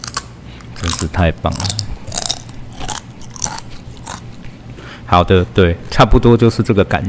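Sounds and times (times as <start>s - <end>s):
crisps being crunched and chewed live: 0.0s - 4.4s
speech: 0.8s - 1.9s, 5.1s - 7.0s.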